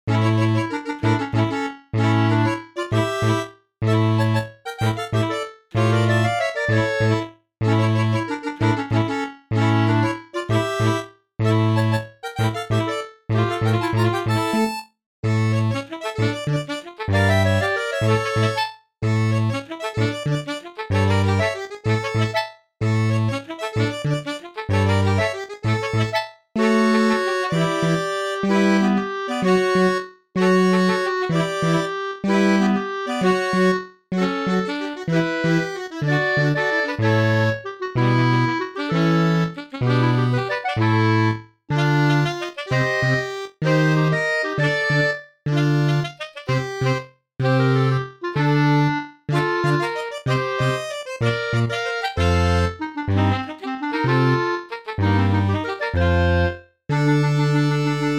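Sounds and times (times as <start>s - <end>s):
fanfare: 0.1s - 58.1s.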